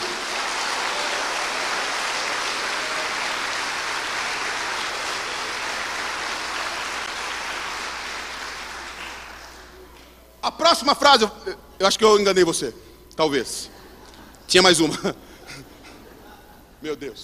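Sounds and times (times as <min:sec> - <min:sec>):
audience applause: 0:00.0 - 0:09.8
speech: 0:10.4 - 0:13.8, 0:14.5 - 0:15.7, 0:16.8 - 0:17.2
laughter: 0:13.7 - 0:16.5.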